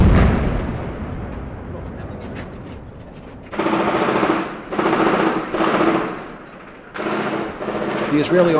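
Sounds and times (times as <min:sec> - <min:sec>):
automatic gunfire: 0:03.5 - 0:08.5.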